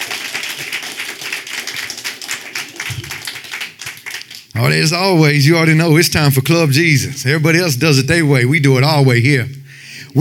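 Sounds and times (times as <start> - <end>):
audience applause: 0.0 - 4.6
speech: 4.6 - 10.2.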